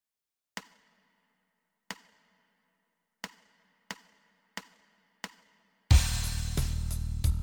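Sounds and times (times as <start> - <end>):
bass startup on open E string: 5.9 - 7.3.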